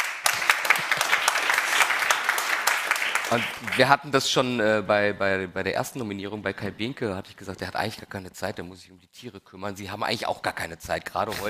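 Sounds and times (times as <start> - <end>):
audience applause: 0.0 - 4.0
speech: 3.3 - 11.4.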